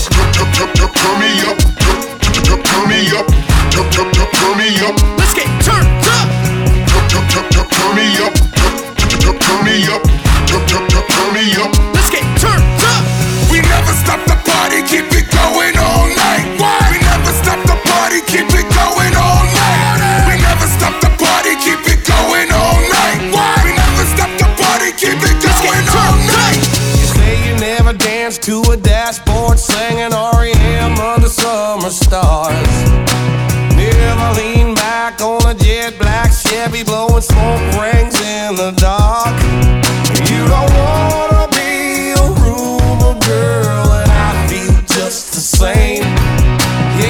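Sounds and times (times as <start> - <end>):
country music: 0.1 - 47.0.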